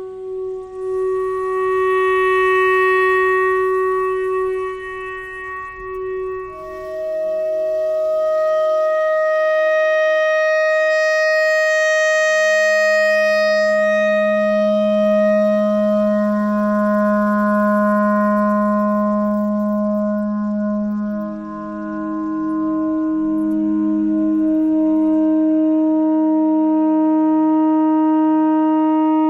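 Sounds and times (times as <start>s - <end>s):
clarinet thread noise: 0.0s - 10.1s, 13.7s - 25.7s
clarinet notes: 0.0s - 29.2s.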